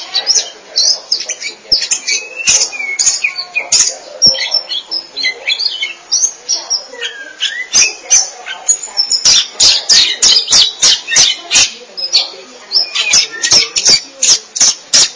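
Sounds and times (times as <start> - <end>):
Oriental magpie-robin song whistles and trills: 0.0 - 15.1.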